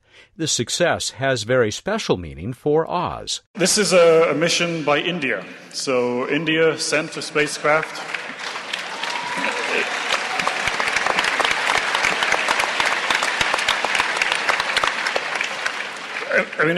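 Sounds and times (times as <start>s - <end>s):
speech: 0.4s - 8.3s, 16.4s - 16.7s
audience applause: 7.4s - 16.7s.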